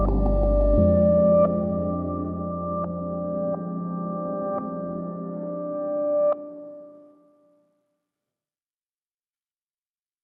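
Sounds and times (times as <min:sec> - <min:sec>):
spiritual spooky soundscape: 0:00.0 - 0:06.4.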